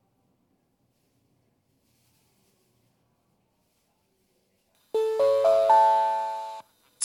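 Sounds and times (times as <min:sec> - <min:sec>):
Kanazawa limited express train: 0:05.0 - 0:06.5.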